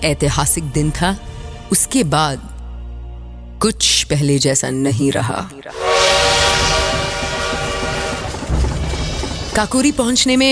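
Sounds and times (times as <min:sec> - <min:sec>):
speech: 0:00.0 - 0:02.5, 0:03.6 - 0:06.4, 0:09.6 - 0:10.4
sustained harmonic horn or whistle tones: 0:05.7 - 0:09.5
moving train rumbling and rattling wheels: 0:05.7 - 0:10.4.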